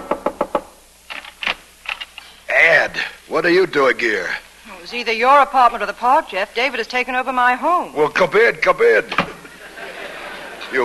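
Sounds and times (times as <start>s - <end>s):
frantic knocking on an apartment door: 0.0s - 0.7s
speech: 2.9s - 9.2s
laughter: 9.4s - 10.8s.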